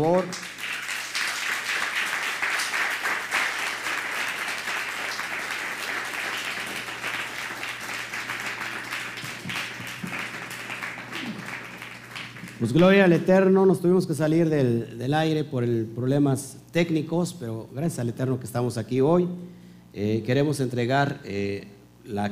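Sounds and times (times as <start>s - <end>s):
speech: 0.0s - 0.6s, 12.6s - 22.3s
applause: 0.0s - 13.2s.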